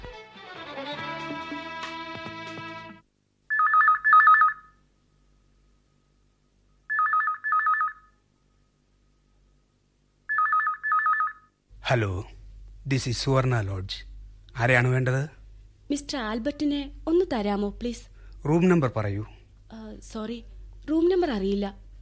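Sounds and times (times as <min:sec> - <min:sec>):
music in a Malayalam radio drama: 0:00.0 - 0:03.0
telephone bell ringing in a Malayalam radio drama: 0:03.5 - 0:04.8, 0:06.9 - 0:08.2, 0:10.3 - 0:11.6
speech: 0:11.9 - 0:12.3, 0:12.9 - 0:19.4, 0:20.0 - 0:21.8.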